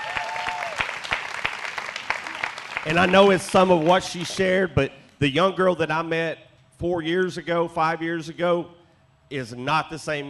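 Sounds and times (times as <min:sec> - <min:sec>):
audience hand clapping: 0:00.0 - 0:04.5
speech: 0:02.8 - 0:10.2.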